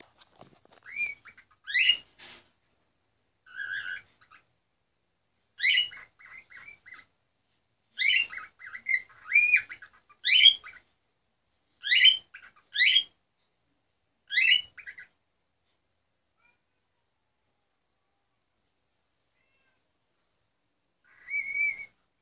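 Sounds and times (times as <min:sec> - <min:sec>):
cockatiel parrot voice: 0:00.7 - 0:02.2, 0:03.4 - 0:04.5, 0:05.6 - 0:07.1, 0:08.0 - 0:10.9, 0:11.8 - 0:13.2, 0:14.2 - 0:15.2, 0:21.0 - 0:22.1.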